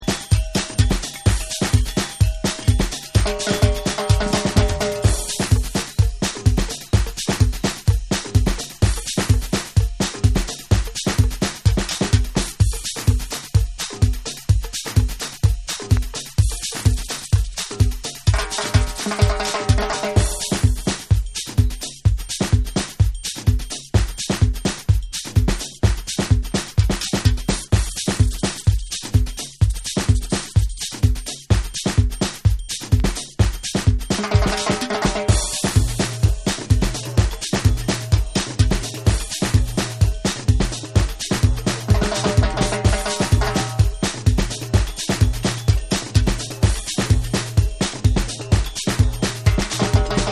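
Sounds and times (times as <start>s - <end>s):
tribal music mix: 0.0s - 50.3s.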